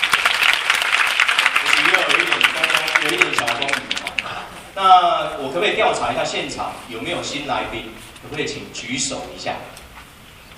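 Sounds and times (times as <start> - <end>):
audience applause: 0.0 - 4.6
speech: 4.8 - 9.8.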